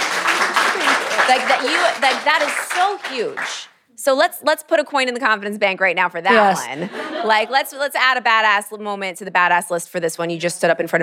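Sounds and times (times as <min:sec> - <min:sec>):
audience applause: 0:00.0 - 0:03.7
speech: 0:01.3 - 0:11.0
laughter: 0:06.3 - 0:07.8.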